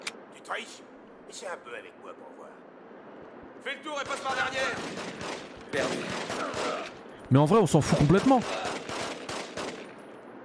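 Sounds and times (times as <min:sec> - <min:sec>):
speech: 0:00.5 - 0:02.8, 0:03.6 - 0:08.7
video game shooter machine gun fire: 0:04.0 - 0:06.9, 0:07.9 - 0:10.0.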